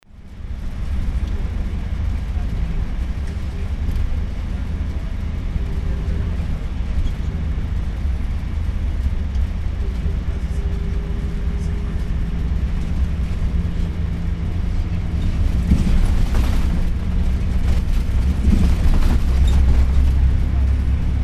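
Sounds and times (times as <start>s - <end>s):
car in Essaouira: 0.0s - 21.2s.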